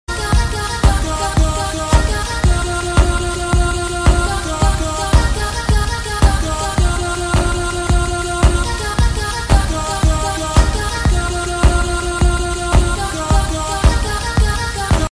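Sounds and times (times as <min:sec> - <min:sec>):
tight bass: 0:00.3 - 0:15.1.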